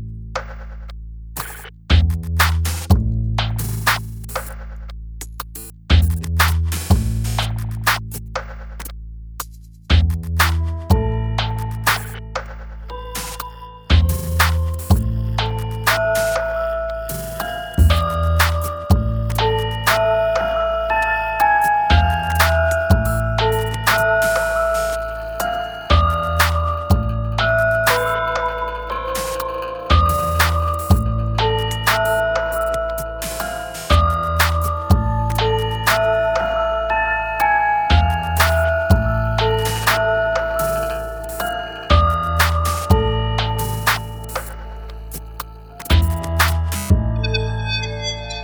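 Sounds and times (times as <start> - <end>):
instrumental music: 1.4 - 48.4.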